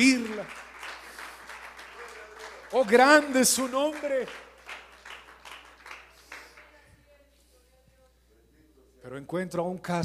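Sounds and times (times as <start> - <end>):
audience applauding: 0.0 - 6.8
speech: 2.7 - 4.4, 9.1 - 10.0.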